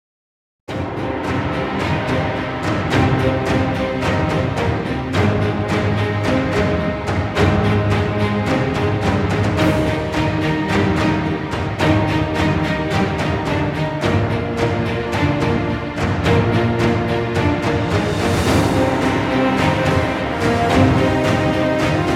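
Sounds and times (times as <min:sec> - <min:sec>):
dramatic epic trailer music: 0:00.7 - 0:22.1.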